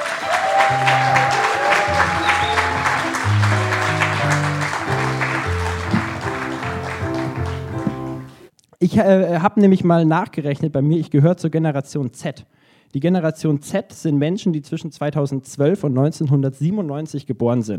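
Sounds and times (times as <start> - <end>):
audience applause: 0.0 - 8.4
speech: 9.0 - 17.7.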